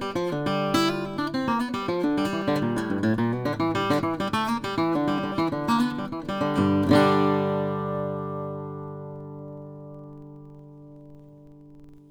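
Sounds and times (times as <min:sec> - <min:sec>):
Gibson L-00 guitar: 0:00.0 - 0:12.0.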